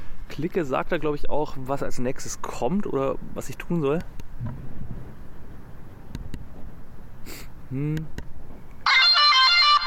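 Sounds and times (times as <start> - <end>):
speech: 0.4 - 4.8, 7.3 - 8.2
smart white cane horn signal, buzzy electronic tone: 8.9 - 9.8.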